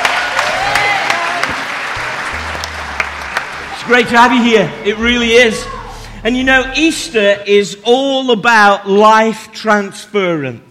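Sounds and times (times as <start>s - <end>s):
audience clapping in praise: 0.0s - 5.0s
speech: 3.9s - 10.6s.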